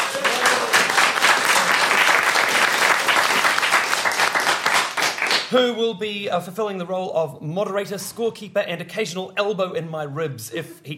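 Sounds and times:
audience round of applause: 0.0 - 5.5
speech: 5.5 - 10.9.

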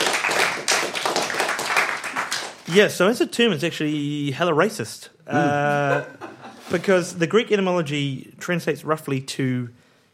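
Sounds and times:
round of applause: 0.0 - 2.7
speech: 2.7 - 9.8
laughter: 5.3 - 6.8.

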